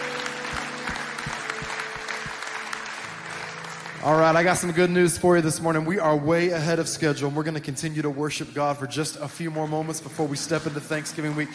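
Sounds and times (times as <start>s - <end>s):
church congregation applause at a Thanksgiving Sunday service: 0.0s - 6.2s, 9.1s - 11.5s
speech: 4.0s - 11.5s.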